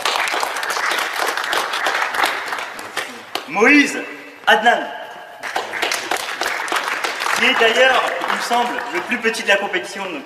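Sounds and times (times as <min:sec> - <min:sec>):
audience applause: 0:00.0 - 0:03.5, 0:05.4 - 0:09.2
speech: 0:03.5 - 0:05.0, 0:07.4 - 0:10.2.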